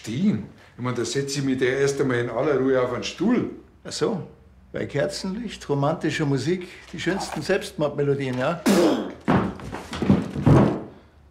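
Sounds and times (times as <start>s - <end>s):
speech: 0.0s - 9.2s
person falling over onto the floor: 8.8s - 11.0s.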